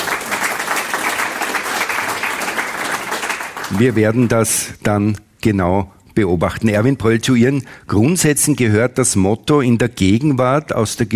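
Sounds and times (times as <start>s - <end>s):
audience applause: 0.0s - 4.3s
speech: 3.7s - 11.1s.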